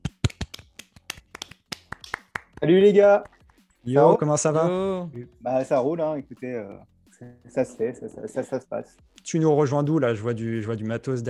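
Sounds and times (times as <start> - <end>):
people clapping: 0.0 - 3.7
speech: 2.6 - 11.2.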